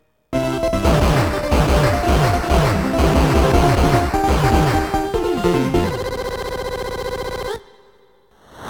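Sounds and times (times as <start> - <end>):
warp sound effect: 0.4 - 6.6
game stage countdown sound: 0.4 - 7.8.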